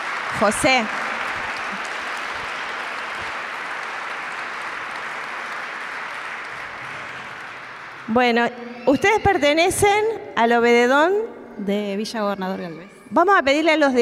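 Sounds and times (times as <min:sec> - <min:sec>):
audience applause: 0:00.0 - 0:09.2
speech: 0:00.3 - 0:01.0, 0:08.1 - 0:14.0.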